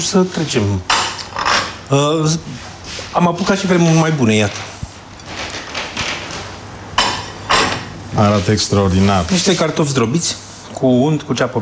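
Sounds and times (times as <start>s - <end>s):
speech: 0.0s - 1.0s, 1.9s - 4.8s, 8.2s - 11.6s
cutlery clinking and scraping against plates during a meal: 0.9s - 1.8s, 7.0s - 7.9s.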